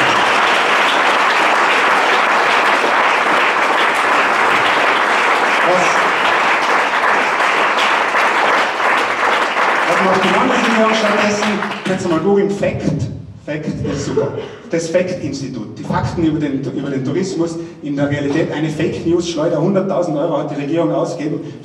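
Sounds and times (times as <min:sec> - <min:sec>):
audience applause: 0:00.0 - 0:12.3
speech: 0:10.2 - 0:21.6
laughter: 0:13.6 - 0:14.8.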